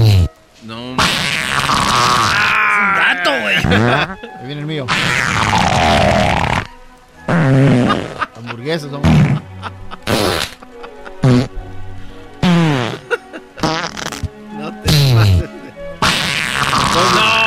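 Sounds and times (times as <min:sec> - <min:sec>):
farts: 0:00.0 - 0:00.3, 0:01.0 - 0:02.5, 0:04.9 - 0:06.7, 0:07.3 - 0:08.2, 0:09.0 - 0:10.6, 0:11.2 - 0:11.6, 0:12.4 - 0:14.3, 0:16.0 - 0:17.4
laughter: 0:02.2 - 0:04.9, 0:07.4 - 0:11.5, 0:12.6 - 0:14.0, 0:14.6 - 0:15.9, 0:16.7 - 0:17.4
speech: 0:03.7 - 0:06.5, 0:08.7 - 0:09.8.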